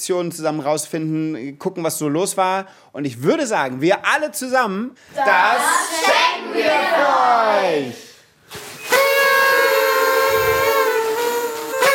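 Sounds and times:
speech: 0.0 - 8.1
party horns blowing: 8.6 - 11.9.

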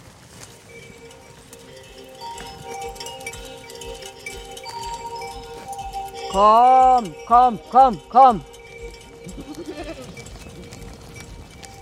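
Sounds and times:
rustling: 0.0 - 6.3, 8.5 - 11.8
speech: 6.3 - 8.6
flock of sheep bleating on the heath on a mid-March morning: 9.2 - 10.2.

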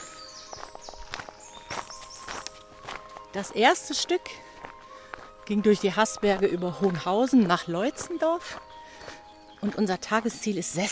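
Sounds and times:
faint bird chirps: 0.0 - 2.6
footsteps of two walkers on the Amtsbotenweg hiking trail on a damp May morning: 0.0 - 10.8
speech: 3.4 - 4.5, 5.5 - 8.7, 9.6 - 10.8.

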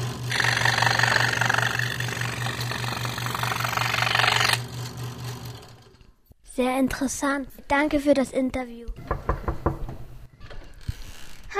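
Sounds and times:
electric saw running in a carpenter's workshop: 0.0 - 6.0
speech: 6.8 - 9.2.

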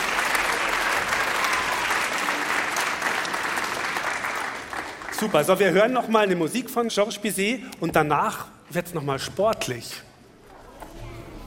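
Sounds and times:
children clapping: 0.0 - 5.7
speech: 5.2 - 10.1.

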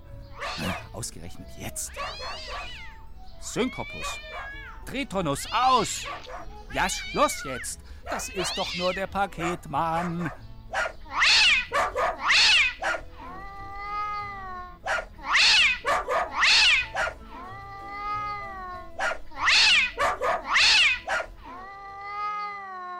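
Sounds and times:
cat yowling: 0.3 - 0.9, 1.9 - 3.0, 3.6 - 4.8, 5.4 - 22.9
dog barking: 0.4 - 0.8, 2.0 - 2.7, 4.0 - 4.6, 6.0 - 6.5, 8.1 - 8.3, 9.4 - 11.0, 11.6 - 13.1, 14.8 - 17.2, 19.0 - 21.4
tomcat hissing: 0.4 - 0.9, 2.0 - 2.9, 10.8 - 13.0, 14.9 - 17.2, 19.0 - 21.3
speech: 1.0 - 10.8.

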